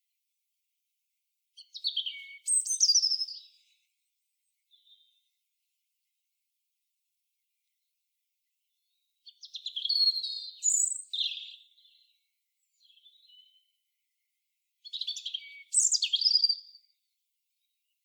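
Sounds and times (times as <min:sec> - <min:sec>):
European robin Erithacus rubecula song: 0:01.6 - 0:03.6, 0:08.6 - 0:13.8, 0:14.8 - 0:16.7.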